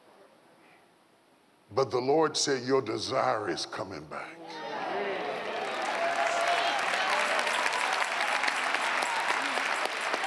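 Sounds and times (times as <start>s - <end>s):
speech: 1.7s - 4.6s
voices calling out and cheering: 4.4s - 10.2s
audience clapping: 5.2s - 10.2s.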